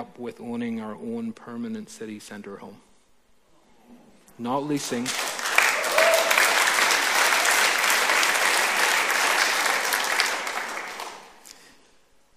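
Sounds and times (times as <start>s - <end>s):
speech: 0.0s - 2.9s, 4.4s - 5.3s
audience clapping: 4.8s - 11.6s
audience cheering: 5.2s - 11.3s.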